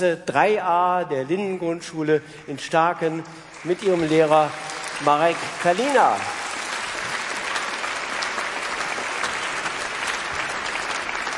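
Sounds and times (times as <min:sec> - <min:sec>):
speech: 0:00.0 - 0:06.4
audience applause: 0:03.0 - 0:11.3.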